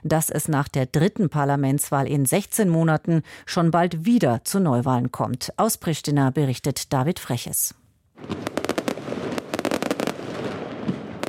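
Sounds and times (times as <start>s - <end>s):
speech: 0.1s - 8.4s
fireworks exploding at election celebration: 8.2s - 11.2s.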